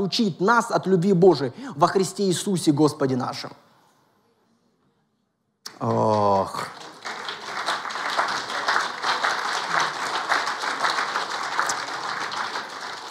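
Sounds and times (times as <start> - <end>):
speech: 0.0 - 3.6, 5.8 - 6.7
audience clapping: 5.7 - 13.0.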